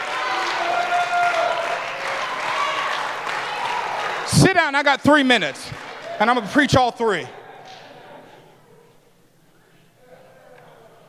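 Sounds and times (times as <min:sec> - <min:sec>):
audience applause: 0:00.0 - 0:07.8
people cheering: 0:00.0 - 0:08.4
speech: 0:04.4 - 0:07.4.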